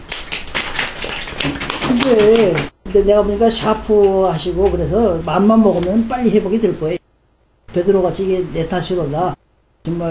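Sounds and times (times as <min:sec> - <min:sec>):
congregation clapping at a Korean church gathering: 0:00.1 - 0:02.7
speech: 0:01.4 - 0:07.0, 0:07.7 - 0:10.0.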